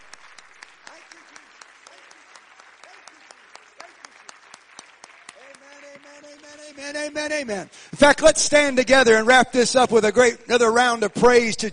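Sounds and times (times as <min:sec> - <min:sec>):
audience clapping: 0:00.0 - 0:08.3
speech: 0:06.8 - 0:11.7.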